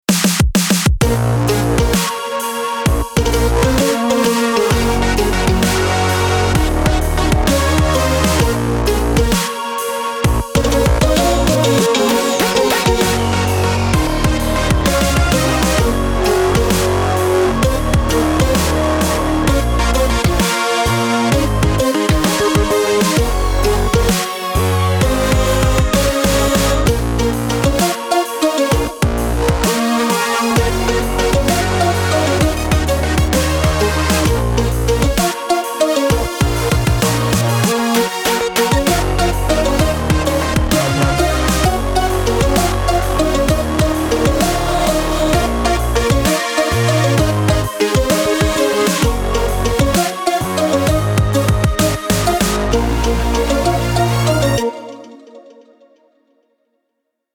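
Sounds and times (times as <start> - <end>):
dubstep music: 0.1 - 55.4.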